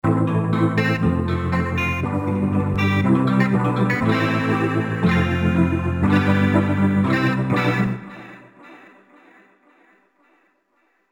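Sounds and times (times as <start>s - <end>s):
dry guitar loop: 0.3s - 8.4s.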